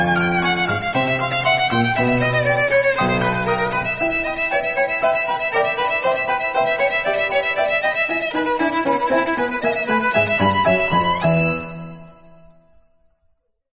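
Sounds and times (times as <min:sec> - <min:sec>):
violin: 0:00.0 - 0:12.8.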